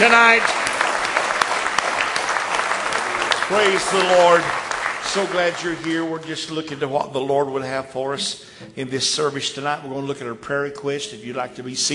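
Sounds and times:
speech: 0:00.0 - 0:00.6, 0:03.5 - 0:11.9
congregation clapping in praise during an evening church service: 0:00.0 - 0:07.2.

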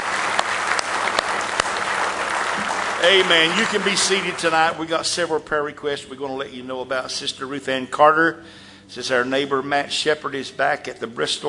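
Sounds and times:
church congregation clapping hands in praise: 0:00.0 - 0:05.4
speech: 0:03.0 - 0:11.4.

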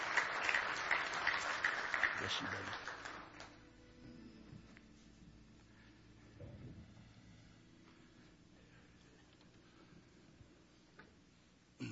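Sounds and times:
applause for singers: 0:00.0 - 0:03.6
speech: 0:02.2 - 0:02.9.

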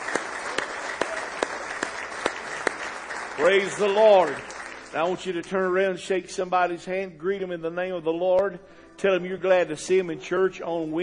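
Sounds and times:
audience applause: 0:00.0 - 0:04.9
sharp rhythmic claps: 0:00.0 - 0:05.6
speech: 0:03.4 - 0:11.0.

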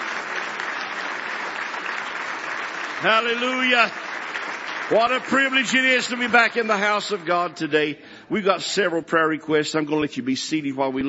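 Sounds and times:
audience clapping hands in praise: 0:00.0 - 0:07.5
speech: 0:03.0 - 0:04.1, 0:04.9 - 0:11.0.

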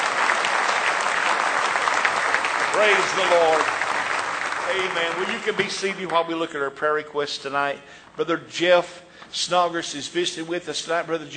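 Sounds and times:
church congregation clapping in praise: 0:00.0 - 0:06.9
speech: 0:02.8 - 0:03.8, 0:04.7 - 0:11.3.

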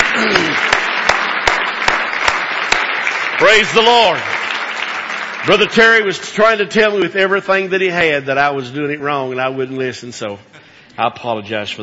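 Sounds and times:
audience hand clapping: 0:00.0 - 0:07.6
speech: 0:03.4 - 0:04.4, 0:05.4 - 0:11.8.

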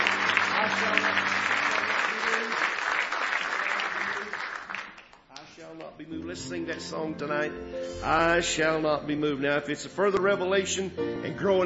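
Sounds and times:
audience clapping in praise: 0:00.0 - 0:07.0
speech: 0:06.4 - 0:11.6.

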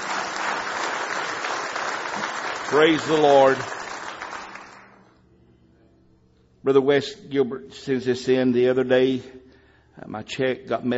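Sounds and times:
church congregation clapping in praise during a morning service: 0:00.0 - 0:05.0
speech: 0:02.7 - 0:03.8, 0:06.6 - 0:10.9.

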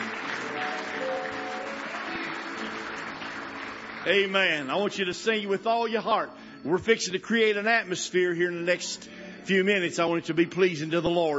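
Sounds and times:
audience clapping hands in praise: 0:00.0 - 0:05.9
speech: 0:04.0 - 0:11.3.

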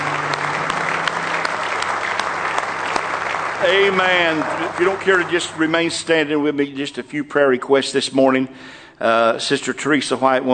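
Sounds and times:
audience clapping hands in praise: 0:00.0 - 0:06.4
speech: 0:03.6 - 0:10.5.

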